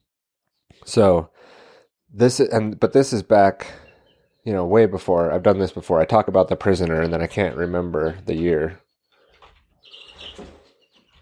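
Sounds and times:
speech: 0.7s - 3.8s, 4.4s - 8.8s
chicks chirping in a brooder inside a room of a house: 3.6s - 4.5s, 6.9s - 11.2s.

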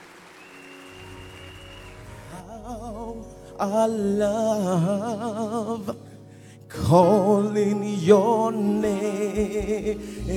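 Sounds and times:
church congregation clapping at a morning worship session: 0.0s - 2.5s
speech: 2.6s - 6.0s, 6.7s - 10.3s.

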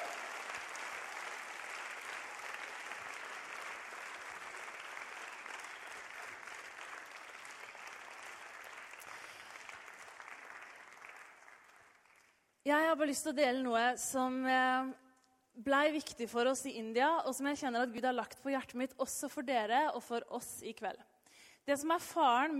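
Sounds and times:
audience applause: 0.0s - 12.4s
speech: 12.7s - 15.0s, 15.6s - 22.5s.

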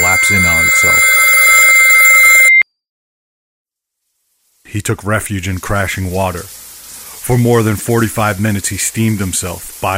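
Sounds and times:
telephone ringing: 0.0s - 2.6s
speech: 4.8s - 6.6s, 7.2s - 9.9s.

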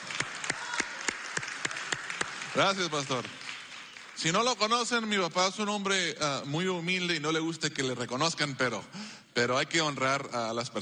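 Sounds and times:
audience applauding: 0.0s - 5.6s
speech: 2.6s - 3.4s, 4.2s - 10.8s.

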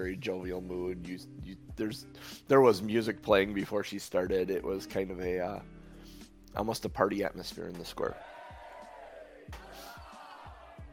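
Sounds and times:
speech: 0.0s - 5.8s, 6.5s - 8.3s
crowd cheering: 8.1s - 10.9s.

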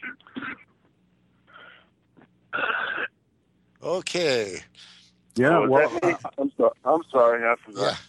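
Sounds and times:
harsh raspy coughs: 0.0s - 0.7s, 2.5s - 3.2s
speech: 3.8s - 8.0s.

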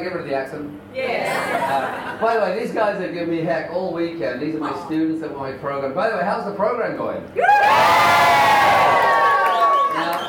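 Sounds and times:
speech: 0.0s - 9.1s
crowd cheering: 7.4s - 10.2s.

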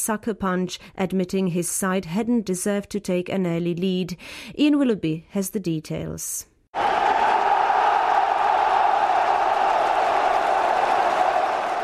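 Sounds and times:
speech: 0.0s - 6.9s
stadium crowd cheering at final whistle at Prague's Cinobo Stadium: 6.8s - 11.8s.

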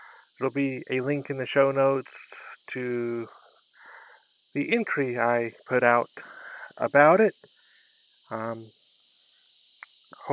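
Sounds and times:
cicadas droning on a hot day in Houston: 0.0s - 10.3s
speech: 0.4s - 3.4s, 4.5s - 7.5s, 8.3s - 8.8s.

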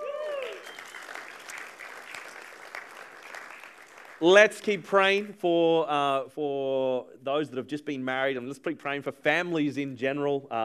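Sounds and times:
crowd applause and cheering: 0.0s - 4.8s
sharp whistle: 0.4s - 1.5s
speech: 4.2s - 10.6s.

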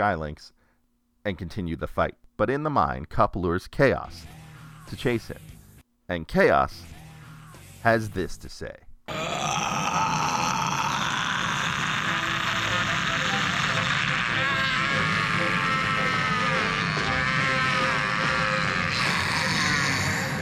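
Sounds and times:
speech: 0.0s - 0.6s, 1.2s - 7.0s, 7.8s - 10.1s
long drawn-out scream: 9.1s - 20.4s.

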